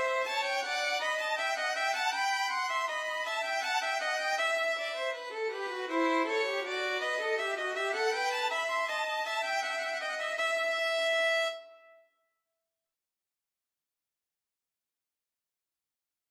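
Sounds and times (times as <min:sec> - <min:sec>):
violin trio playing a bourree: 0:00.0 - 0:11.4.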